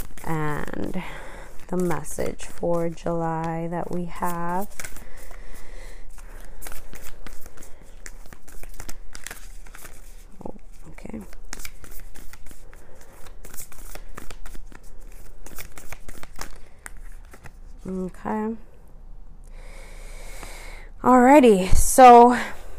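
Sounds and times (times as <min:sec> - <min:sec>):
Starseed Oracle cards by Rebecca Campbell being shuffled: 0:00.0 - 0:18.2
speech: 0:00.3 - 0:05.0, 0:21.4 - 0:22.6.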